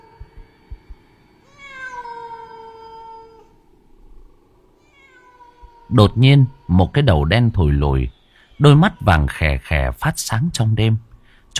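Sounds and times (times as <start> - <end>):
low hum: 0.0 - 11.5
cat meowing plaintively in a deserted graveyard field: 1.4 - 3.5, 4.8 - 7.2, 8.4 - 9.7
speech: 5.9 - 11.5.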